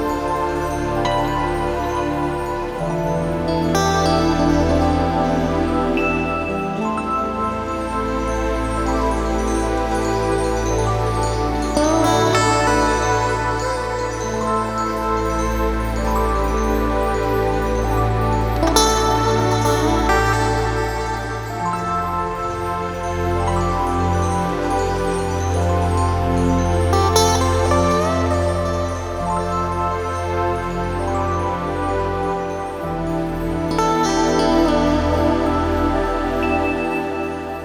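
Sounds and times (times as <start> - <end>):
guitar melody: 0.0 - 37.6.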